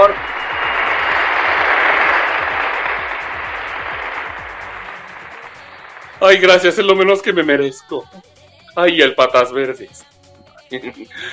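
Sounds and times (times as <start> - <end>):
applause: 0.0 - 6.9
speech: 6.2 - 10.1, 10.7 - 11.3
laughter: 10.7 - 11.3.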